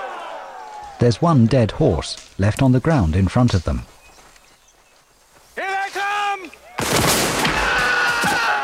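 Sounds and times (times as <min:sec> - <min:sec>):
speech: 0:01.0 - 0:03.9
gunfire volley in a Civil War battle scene from an audio drama: 0:06.8 - 0:08.5.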